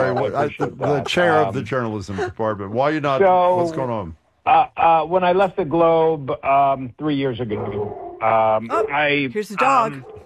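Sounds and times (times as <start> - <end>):
laughter: 0.0 - 2.6
speech: 0.2 - 10.2
dog barking: 8.7 - 9.1.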